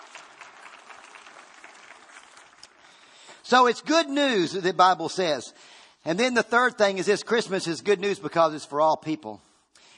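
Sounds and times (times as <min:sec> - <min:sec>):
audience clapping: 0:00.0 - 0:03.5
speech: 0:03.5 - 0:09.4.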